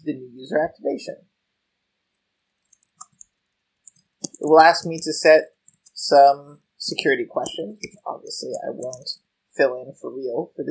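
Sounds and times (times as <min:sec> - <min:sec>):
speech: 0:00.4 - 0:01.3, 0:04.4 - 0:10.6
faint computer mouse clicks on an email activation link: 0:02.1 - 0:06.0, 0:06.9 - 0:09.1.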